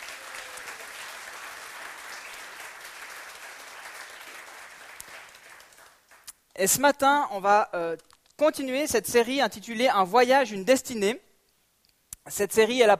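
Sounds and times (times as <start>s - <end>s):
audience applause: 0.0s - 6.2s
speech: 6.6s - 11.3s, 12.2s - 12.9s.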